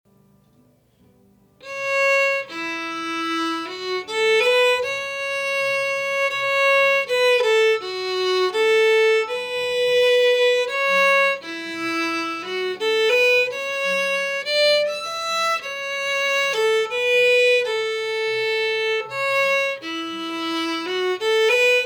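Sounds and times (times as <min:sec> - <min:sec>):
waltz: 0:01.6 - 0:21.8.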